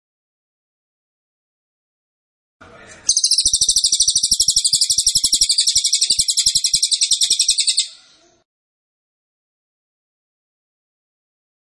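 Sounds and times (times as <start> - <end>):
cililin singing long rapid trill: 2.9 - 8.3.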